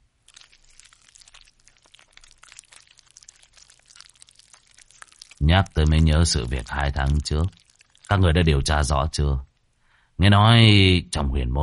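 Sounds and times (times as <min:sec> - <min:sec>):
chewing rare bloody beefsteak noisily: 0:00.2 - 0:08.5
speech: 0:05.4 - 0:09.5, 0:10.2 - 0:11.6.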